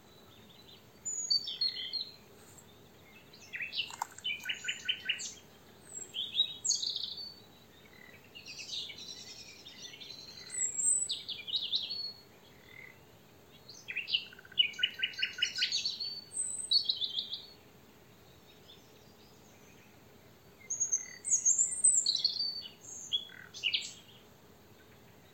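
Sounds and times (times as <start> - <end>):
European robin singing: 0.0 - 25.3.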